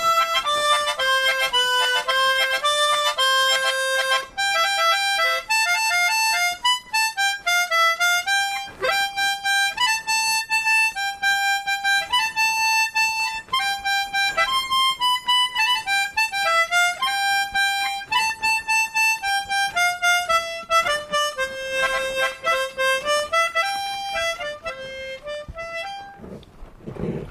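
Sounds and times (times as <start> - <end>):
harmonica song: 0.0 - 26.5.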